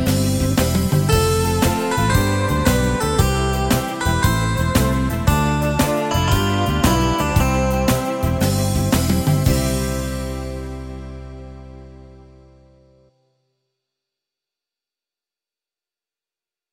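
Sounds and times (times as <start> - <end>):
organ song with moving notes: 0.2 - 12.9.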